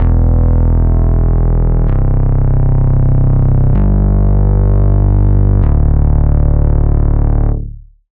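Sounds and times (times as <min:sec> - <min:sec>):
bass: 0:00.0 - 0:08.1.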